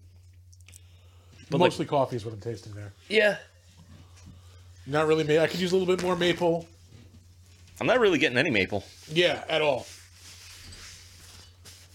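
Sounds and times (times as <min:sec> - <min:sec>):
speech: 0:01.5 - 0:03.5, 0:04.9 - 0:06.8, 0:07.8 - 0:10.0
wiping stout off a hand: 0:08.8 - 0:11.9.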